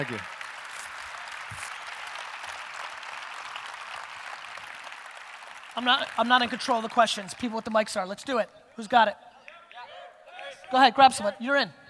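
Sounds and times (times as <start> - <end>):
speech: 0.0 - 0.4, 5.8 - 9.2, 10.7 - 11.8
audience applause: 0.0 - 8.0.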